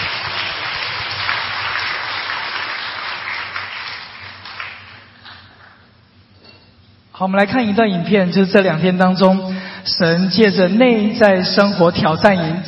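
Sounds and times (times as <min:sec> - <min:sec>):
audience applause at a church gathering: 0:00.0 - 0:05.8
speech: 0:07.2 - 0:12.6.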